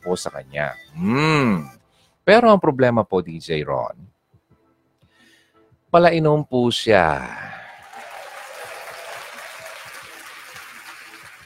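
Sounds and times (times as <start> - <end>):
speech: 0.0 - 4.1, 5.9 - 7.5
crowd applause: 7.3 - 11.4.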